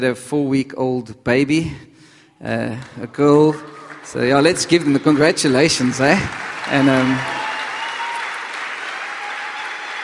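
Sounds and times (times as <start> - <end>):
speech: 0.0 - 7.4
church congregation clapping to welcome a missionary's wife: 2.7 - 10.0.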